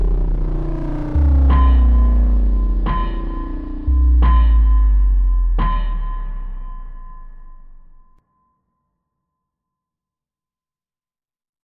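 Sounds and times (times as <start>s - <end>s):
industrial sound: 0.0s - 8.2s.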